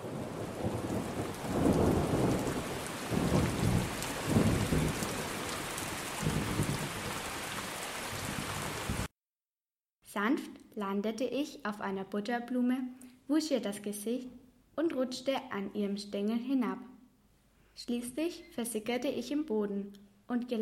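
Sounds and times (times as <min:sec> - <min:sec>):
rain falling from a dark rain cloud: 0:00.0 - 0:09.1
speech: 0:10.2 - 0:16.9, 0:17.8 - 0:20.6.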